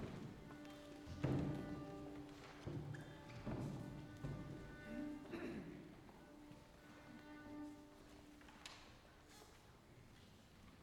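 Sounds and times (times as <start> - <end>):
calm orchestral band music: 0.1 - 8.9.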